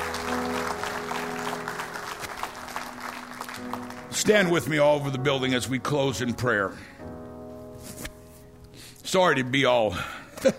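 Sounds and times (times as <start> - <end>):
audience applause: 0.0 - 4.7
speech: 4.2 - 7.0, 9.1 - 10.5.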